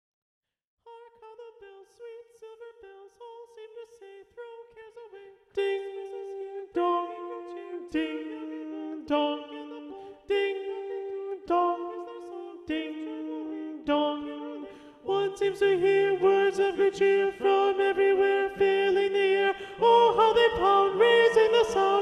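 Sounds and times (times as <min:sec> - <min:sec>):
SATB choir singing with alto predominant: 0:05.6 - 0:22.0.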